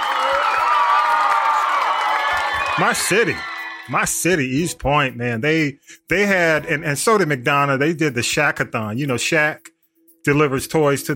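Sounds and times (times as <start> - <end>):
applause: 0.0 - 3.7
speech: 2.8 - 11.1.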